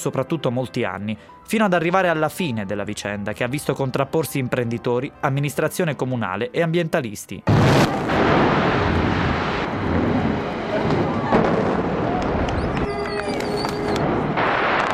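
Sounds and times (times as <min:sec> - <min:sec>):
speech: 0:00.0 - 0:08.8
sharp cracking bursts of explosive demolition: 0:07.5 - 0:12.7, 0:13.6 - 0:14.9
explosive demolition of a tower block in a building complex: 0:07.5 - 0:14.9.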